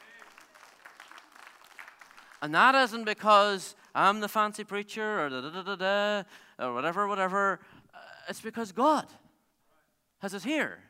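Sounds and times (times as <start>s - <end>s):
audience clapping: 0.0s - 4.3s
speech: 2.4s - 7.7s, 8.3s - 9.2s, 10.2s - 10.8s.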